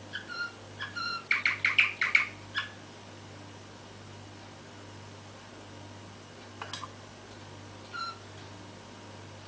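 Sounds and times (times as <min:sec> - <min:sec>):
canary song: 0:00.0 - 0:02.9, 0:07.9 - 0:08.2.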